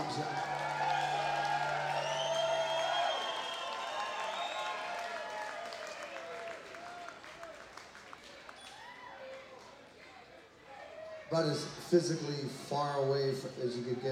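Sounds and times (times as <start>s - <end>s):
audience applause: 0.0s - 9.8s
speech: 11.3s - 14.1s.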